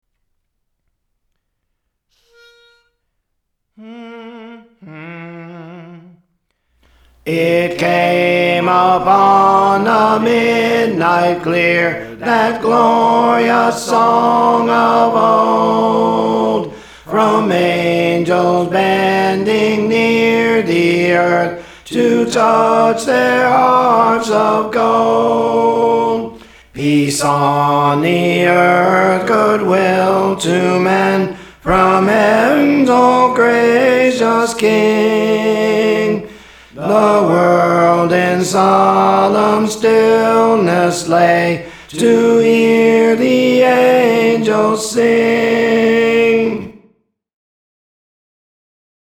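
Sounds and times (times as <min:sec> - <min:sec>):
tenor singing: 0:03.8 - 0:06.3, 0:07.1 - 0:46.8.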